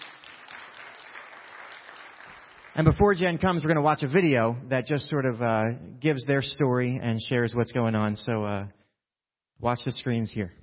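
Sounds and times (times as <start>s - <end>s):
crowd applauding: 0.0s - 3.6s
speech: 2.8s - 8.8s, 9.6s - 10.6s.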